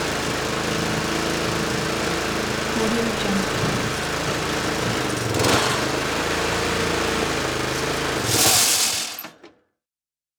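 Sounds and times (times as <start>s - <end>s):
lawn mower: 0.0s - 9.4s.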